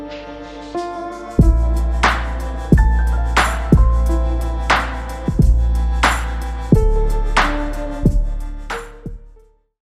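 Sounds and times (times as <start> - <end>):
music beat: 0.1 - 9.4.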